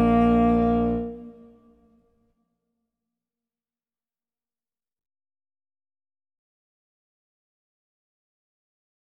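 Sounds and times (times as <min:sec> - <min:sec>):
tenor saxophone playing a minuet: 0:00.0 - 0:01.9.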